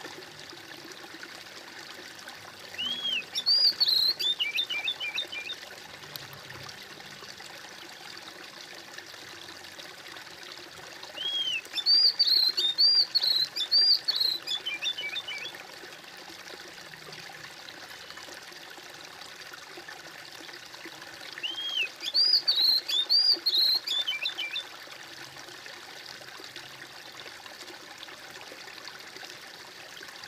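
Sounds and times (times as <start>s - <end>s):
bird whistled song: 2.8s - 5.6s, 11.2s - 15.5s, 21.4s - 24.6s.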